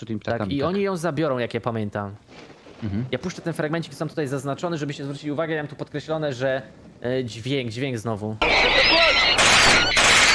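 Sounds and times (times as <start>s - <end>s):
speech: 0.0s - 10.0s
gunfire shooting at birds in film: 9.3s - 10.3s.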